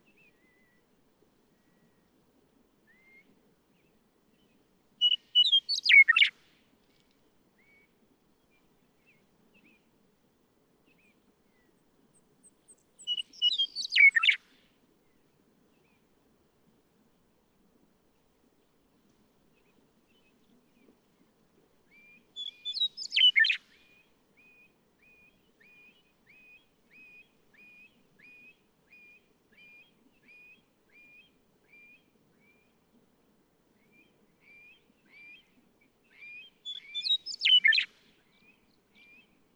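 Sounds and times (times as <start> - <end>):
Western Meadowlark: 4.4 - 6.4, 10.9 - 14.5, 21.9 - 32.8, 33.8 - 39.5.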